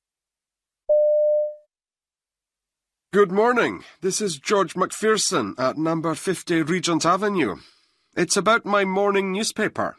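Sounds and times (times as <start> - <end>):
telephone line tone: 0.9 - 1.6
speech: 3.1 - 9.9.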